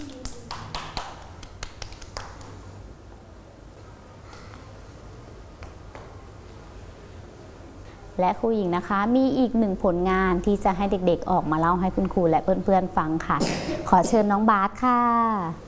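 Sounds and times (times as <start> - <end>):
children clapping their hands: 0.0 - 2.7
speech: 8.2 - 15.6.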